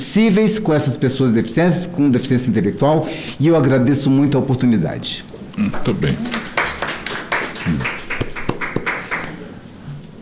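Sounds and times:
speech: 0:00.0 - 0:06.5, 0:07.6 - 0:08.0
audience applause: 0:06.2 - 0:09.4.

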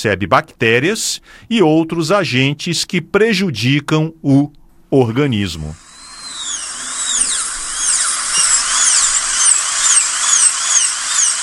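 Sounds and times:
speech: 0:00.0 - 0:05.9
dentist's drill whining: 0:05.7 - 0:11.4.

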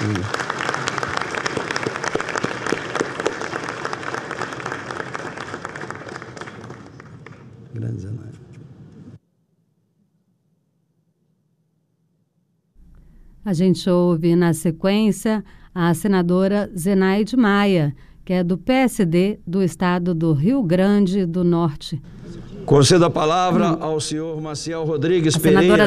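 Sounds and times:
audience applause: 0:00.0 - 0:07.9
speech: 0:13.5 - 0:25.8.

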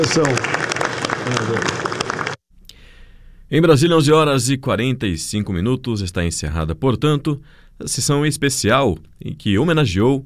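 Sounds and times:
speech: 0:00.0 - 0:00.6, 0:01.3 - 0:01.9, 0:03.5 - 0:10.2
applause at the close of a special session in the Brazilian Senate: 0:00.0 - 0:02.4.

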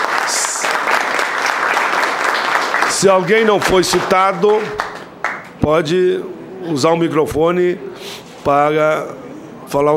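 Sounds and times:
group applauding at a committee session: 0:00.0 - 0:05.6
speech: 0:03.0 - 0:04.8, 0:05.6 - 0:09.9.

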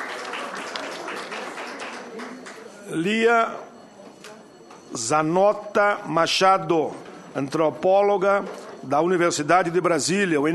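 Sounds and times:
audience applause for guests: 0:00.0 - 0:02.7
speech: 0:02.9 - 0:03.7, 0:04.9 - 0:10.5.

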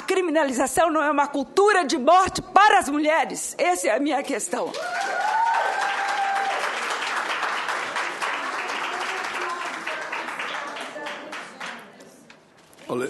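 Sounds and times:
speech: 0:00.2 - 0:05.4
audience applause in plenary session: 0:04.7 - 0:11.8.

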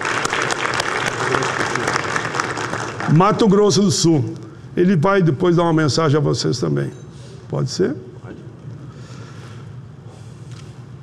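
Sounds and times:
audience applause from a sizable crowd: 0:00.0 - 0:03.6
speech: 0:03.1 - 0:08.1.

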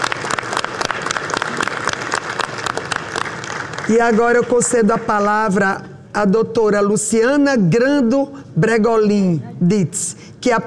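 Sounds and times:
applause: 0:00.0 - 0:05.1
speech: 0:03.9 - 0:10.6.

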